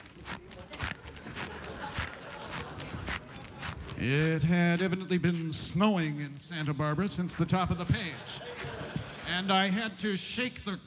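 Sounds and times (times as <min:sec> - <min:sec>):
footsteps on a gravel driveway sound effect: 0:00.0 - 0:10.0
laughter: 0:00.0 - 0:10.8
low continuous hiss: 0:03.9 - 0:10.8
speech: 0:04.0 - 0:10.8.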